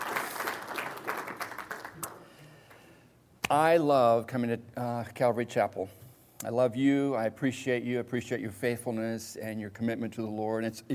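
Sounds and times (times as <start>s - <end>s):
audience applauding: 0.0s - 2.3s
speech: 3.5s - 10.9s.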